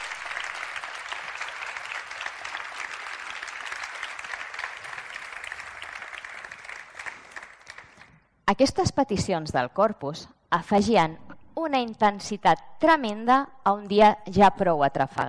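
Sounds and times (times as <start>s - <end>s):
audience applause: 0.0s - 8.2s
speech: 8.5s - 15.2s.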